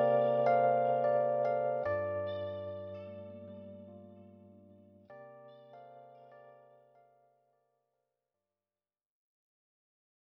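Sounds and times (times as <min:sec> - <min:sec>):
instrumental music: 0:00.0 - 0:07.1.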